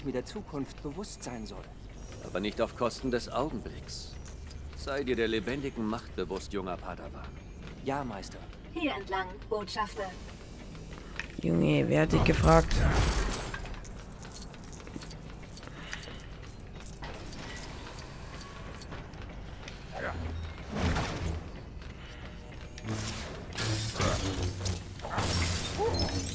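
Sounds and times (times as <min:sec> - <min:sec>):
speech: 0:00.0 - 0:10.3, 0:11.4 - 0:13.4
Lego Star Wars The Skywalker Saga game sound: 0:00.0 - 0:26.3
Lego objects being smashed in Lego Star Wars The Skywalker Saga: 0:12.3 - 0:14.8, 0:22.9 - 0:26.3.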